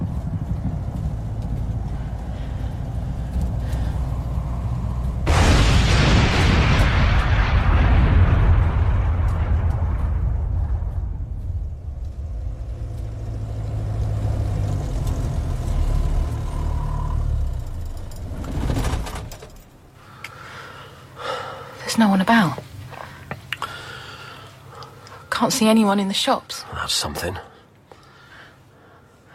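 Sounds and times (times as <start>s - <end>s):
plane engine drone: 0.0s - 20.0s
plane crashing and exploding: 5.2s - 11.9s
speech: 22.0s - 22.6s, 25.5s - 27.5s.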